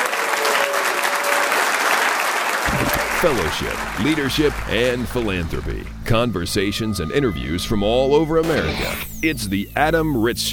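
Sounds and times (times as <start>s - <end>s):
audience applause: 0.0s - 5.9s
speech: 3.2s - 10.5s.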